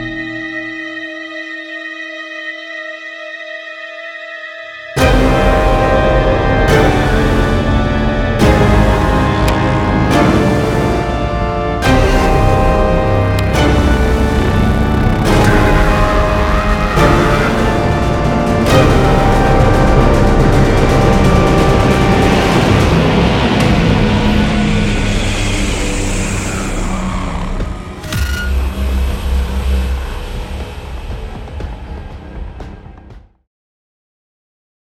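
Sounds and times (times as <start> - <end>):
dobro sound effects: 5.0 - 32.8.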